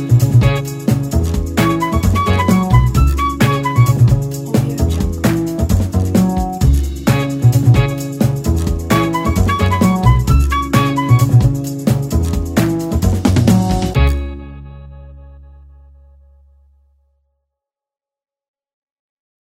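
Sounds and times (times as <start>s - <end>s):
jazz funk music: 0.0s - 15.0s.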